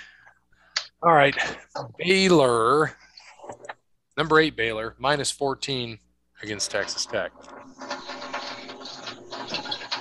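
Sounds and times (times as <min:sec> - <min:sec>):
speech: 0:01.0 - 0:08.1
garbage disposal running: 0:06.4 - 0:09.9.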